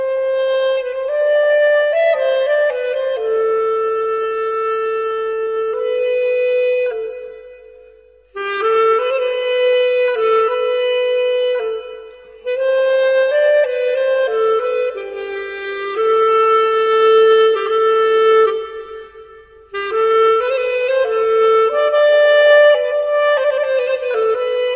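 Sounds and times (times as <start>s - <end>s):
solo clarinet in Avaz Dashti: 0.0s - 24.7s.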